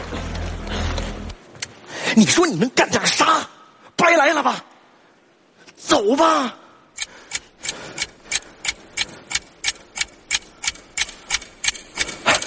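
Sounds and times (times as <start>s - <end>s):
speech: 2.2s - 4.7s, 5.8s - 6.6s
clock ticking: 7.0s - 12.4s.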